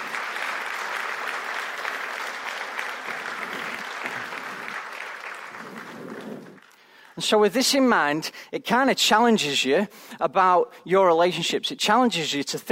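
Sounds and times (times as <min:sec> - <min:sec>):
audience applause: 0:00.0 - 0:07.3
speech: 0:07.2 - 0:12.7.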